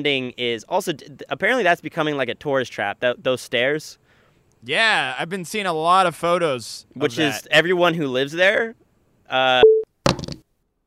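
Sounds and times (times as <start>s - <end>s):
speech: 0.0s - 4.0s, 4.6s - 9.7s
phone beep: 9.6s - 9.9s
phone hitting the ground: 10.0s - 10.4s.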